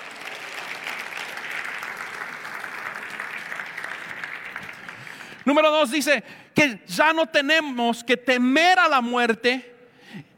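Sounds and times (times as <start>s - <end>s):
audience applauding: 0.0s - 5.6s
speech: 5.5s - 10.3s.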